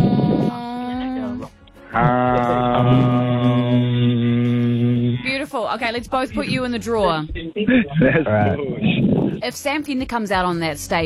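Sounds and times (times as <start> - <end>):
crowd of voices humming together in sustained tones: 0.0 - 5.3
speech: 5.8 - 11.0.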